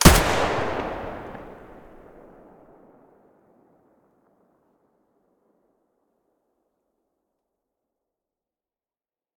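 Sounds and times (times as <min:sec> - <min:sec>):
AK105 muzzle blast in stereo: 0:00.0 - 0:02.3.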